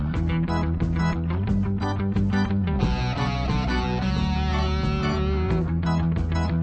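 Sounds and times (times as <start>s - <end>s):
game music: 0.2s - 6.5s.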